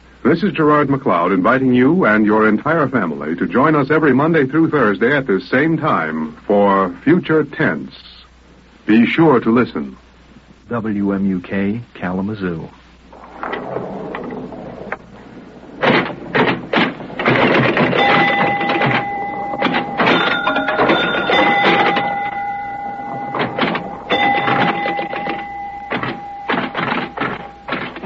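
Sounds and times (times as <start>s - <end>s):
speech: 0.2s - 8.1s, 8.8s - 10.0s, 10.7s - 12.8s
pinball machine bells and mechanisms: 15.8s - 28.0s.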